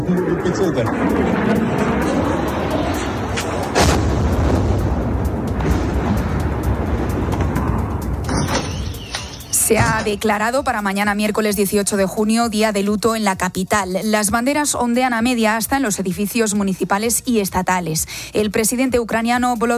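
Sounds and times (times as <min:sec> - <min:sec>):
rumbling roar in Kyiv during a Russian drone and missile attack: 0:00.0 - 0:08.3
speech: 0:00.1 - 0:01.7, 0:09.7 - 0:19.7
loud burst: 0:00.4 - 0:10.2.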